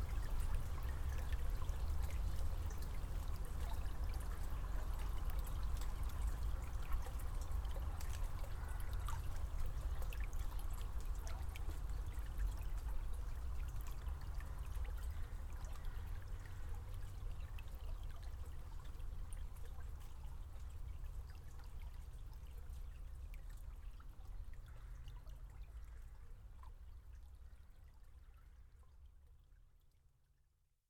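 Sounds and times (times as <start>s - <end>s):
brook: 0.0s - 30.7s.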